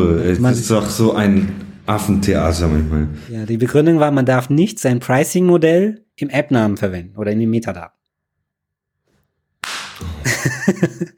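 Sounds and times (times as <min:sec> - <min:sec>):
speech: 0:00.0 - 0:08.0, 0:10.0 - 0:11.1
facepalm, hand slapping forehead: 0:09.6 - 0:10.2
laughter: 0:10.0 - 0:11.1.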